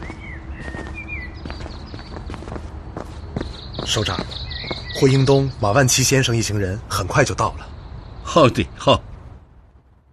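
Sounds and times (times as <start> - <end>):
footsteps crunching on a mountain path: 0.0 - 5.2
speech: 3.9 - 4.4, 5.0 - 7.7, 8.3 - 9.1.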